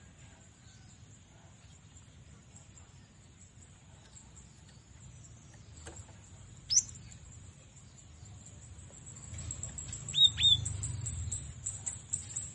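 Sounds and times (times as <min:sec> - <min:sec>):
cinereous tit whistling song: 0:06.7 - 0:07.0, 0:09.3 - 0:12.5.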